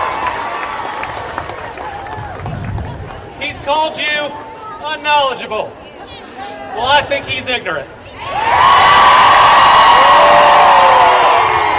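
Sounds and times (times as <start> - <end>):
raucous rally crowd cheering: 0.0 - 3.3, 8.2 - 11.7
speech: 3.6 - 5.9, 6.8 - 8.7.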